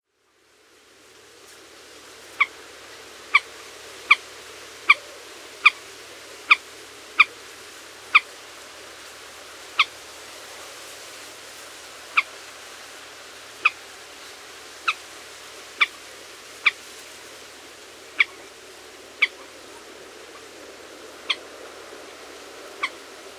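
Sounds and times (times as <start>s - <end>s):
low hiss: 0.0s - 23.3s
common moorhen sharp calls: 15.8s - 16.8s, 18.1s - 18.6s, 19.2s - 20.5s, 21.2s - 21.5s, 22.8s - 23.3s.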